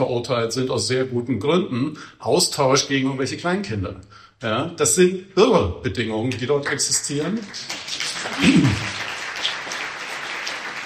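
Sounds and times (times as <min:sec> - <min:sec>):
speech: 0:00.0 - 0:08.9
audience applause: 0:07.4 - 0:10.8.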